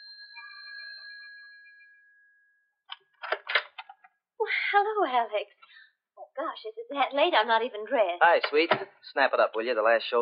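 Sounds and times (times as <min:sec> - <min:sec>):
doorbell ringing: 0:00.0 - 0:02.7
speech: 0:04.7 - 0:05.8, 0:06.4 - 0:10.2.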